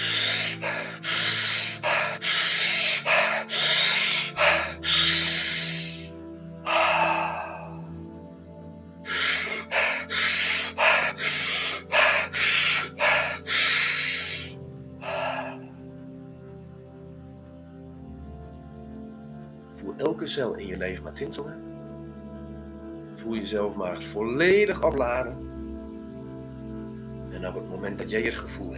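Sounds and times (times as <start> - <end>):
deep breathing in during a guided breathing exercise: 0.0 - 8.2, 9.0 - 15.8
soft sustained musical drone: 0.0 - 28.7
speech: 20.3 - 21.7, 23.5 - 25.5, 27.8 - 28.7.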